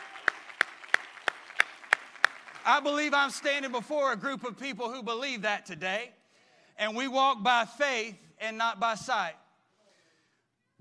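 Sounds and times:
audience clapping hands: 0.0 - 4.2
speech: 2.6 - 6.2, 6.8 - 9.4.

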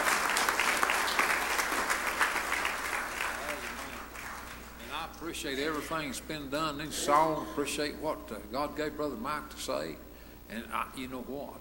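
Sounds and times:
audience applause: 0.0 - 5.0
speech: 5.3 - 11.5.

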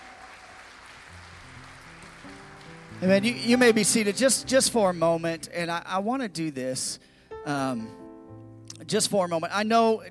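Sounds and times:
audience hand clapping: 0.0 - 4.7
speech: 3.0 - 8.0, 8.8 - 10.0.

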